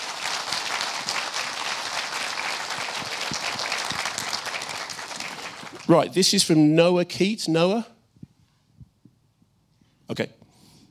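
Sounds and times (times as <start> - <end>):
audience applause: 0.0 - 6.1
speech: 5.9 - 7.9, 10.2 - 10.4.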